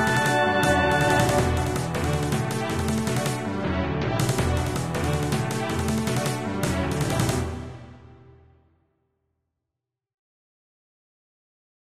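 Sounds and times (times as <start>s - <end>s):
battle music: 0.0s - 8.6s.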